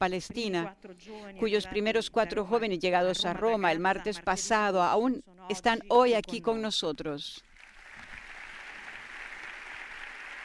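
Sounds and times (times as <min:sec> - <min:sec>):
speech: 0:00.0 - 0:07.5
audience applause in a lecture hall: 0:07.6 - 0:10.4.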